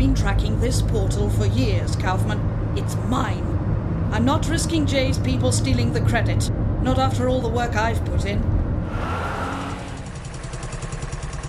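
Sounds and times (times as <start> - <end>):
speech: 0.2 - 9.2
car engine revving hard as the clutch burns out: 8.8 - 10.2.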